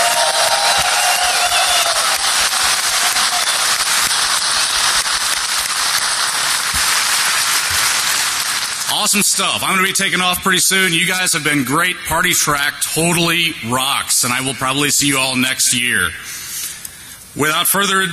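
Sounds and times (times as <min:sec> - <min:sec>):
audience applause: 0:00.0 - 0:09.5
speech: 0:09.1 - 0:16.4, 0:17.4 - 0:18.1.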